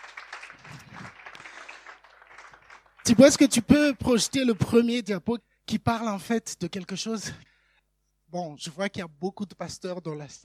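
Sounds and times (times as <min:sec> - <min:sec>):
faint applause in a hall during a morning church gathering: 0:00.0 - 0:04.8
speech: 0:03.1 - 0:07.5, 0:08.3 - 0:10.4.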